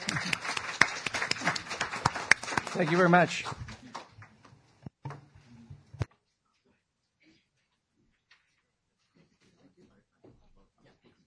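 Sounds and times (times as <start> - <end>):
crowd applause: 0.0 - 4.4
speech: 2.8 - 3.6.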